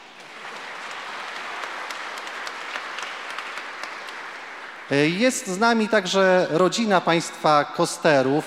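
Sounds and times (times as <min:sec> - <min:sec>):
audience applause: 0:00.0 - 0:06.6
speech: 0:04.9 - 0:08.4.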